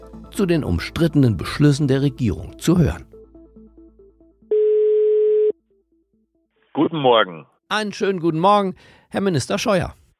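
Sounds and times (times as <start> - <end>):
speech: 0.3 - 3.1, 6.8 - 10.0
telephone ringing tone: 4.5 - 5.6.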